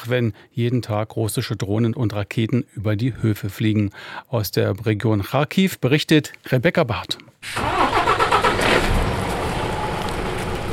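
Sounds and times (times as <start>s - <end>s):
speech: 0.0s - 7.8s
milk tanker truck driving off farm in the Kharkiv region: 7.5s - 10.7s.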